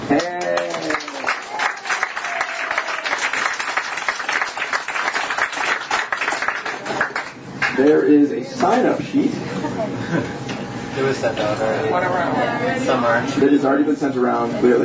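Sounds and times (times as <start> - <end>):
audience clapping: 0.0 - 8.0
speech: 8.6 - 10.4, 11.0 - 14.8
crowd murmur: 9.2 - 14.8.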